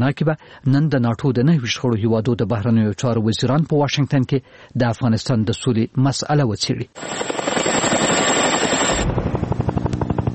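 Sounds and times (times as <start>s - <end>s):
speech: 0.0s - 7.4s
NATO helicopter flying over Afghanistan: 7.0s - 10.3s.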